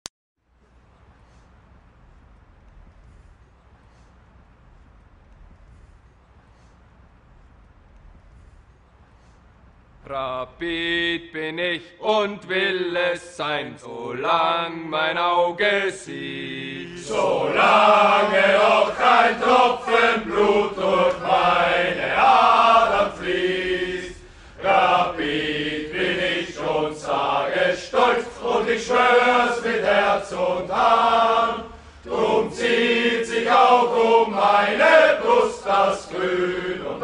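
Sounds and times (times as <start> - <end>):
football club anthem song: 10.0 - 37.0.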